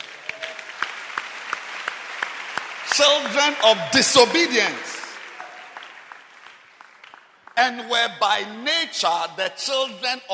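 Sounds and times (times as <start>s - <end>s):
audience applauding: 0.0s - 7.8s
speech: 3.0s - 4.9s, 7.6s - 10.3s.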